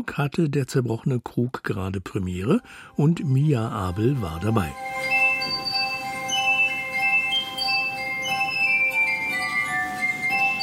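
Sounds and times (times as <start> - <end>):
speech: 0.0 - 5.6
glass music from a stage production: 2.5 - 10.6.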